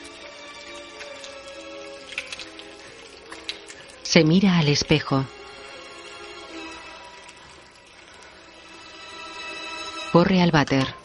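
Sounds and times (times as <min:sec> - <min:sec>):
hot water running from a bathroom tap: 0:00.0 - 0:11.0
hands coated in powdered bleach rubbed under running water: 0:00.9 - 0:04.0
speech: 0:04.1 - 0:05.4, 0:10.2 - 0:11.0.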